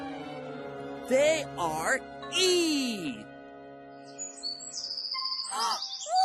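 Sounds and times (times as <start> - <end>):
speech: 1.1 - 3.2
bird chirping as it flies up high: 4.0 - 6.2.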